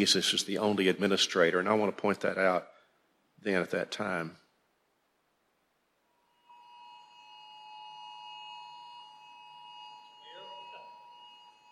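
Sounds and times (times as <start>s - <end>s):
speech: 0.0s - 2.7s, 3.4s - 4.4s
cell phone emergency blue alert tone: 6.5s - 11.7s.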